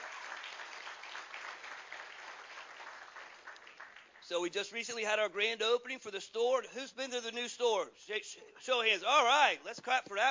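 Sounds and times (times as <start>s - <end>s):
audience applause: 0.0s - 4.3s
speech: 4.3s - 10.3s.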